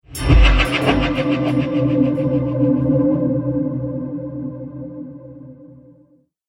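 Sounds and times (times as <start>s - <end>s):
cinematic trailer hit: 0.1s - 3.9s.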